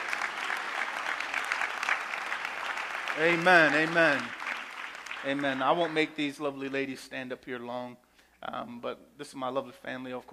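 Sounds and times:
audience clapping hands: 0:00.0 - 0:07.0
speech: 0:03.2 - 0:04.4, 0:05.2 - 0:10.3.

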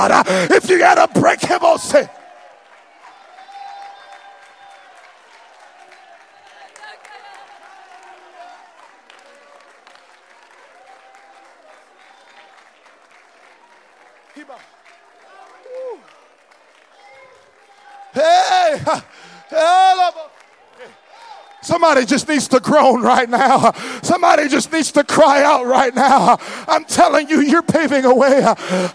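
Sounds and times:
laughter: 0:00.0 - 0:01.9, 0:21.7 - 0:28.9
speech: 0:00.0 - 0:02.2, 0:21.7 - 0:28.9
audience applauding and clapping: 0:00.0 - 0:28.9.

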